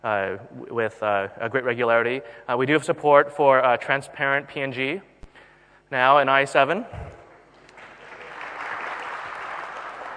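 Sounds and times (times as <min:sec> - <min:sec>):
speech: 0:00.0 - 0:05.1, 0:05.9 - 0:07.2
crowd applauding: 0:07.3 - 0:10.1.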